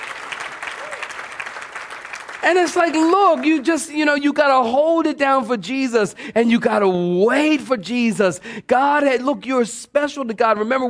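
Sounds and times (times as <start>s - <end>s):
audience clapping: 0.0s - 4.0s
speech: 2.4s - 10.8s.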